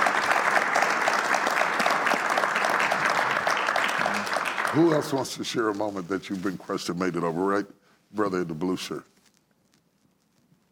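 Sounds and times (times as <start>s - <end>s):
audience applause: 0.0s - 5.5s
speech: 4.7s - 9.1s.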